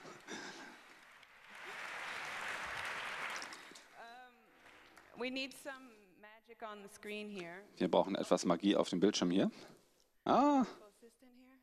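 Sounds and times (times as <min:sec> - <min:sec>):
applause in the hall: 0:00.0 - 0:05.2
speech: 0:05.2 - 0:10.8.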